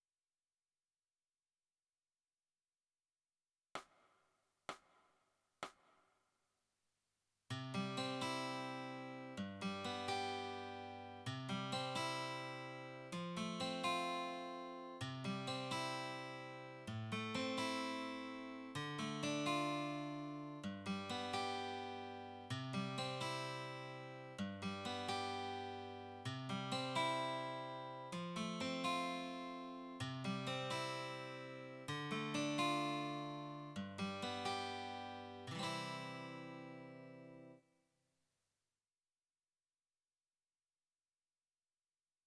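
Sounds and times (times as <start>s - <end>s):
guitar: 7.5s - 37.6s.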